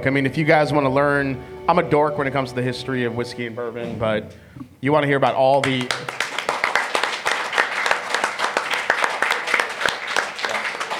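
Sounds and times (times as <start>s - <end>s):
speech: 0.0s - 6.2s
crowd applause: 5.6s - 10.9s.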